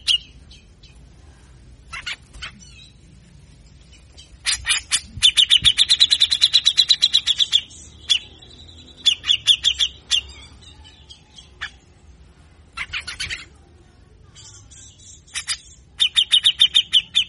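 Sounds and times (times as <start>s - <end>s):
grey-cheeked bulbul rasping chatter: 1.9s - 2.9s, 4.2s - 10.6s, 12.7s - 13.6s, 15.2s - 17.2s.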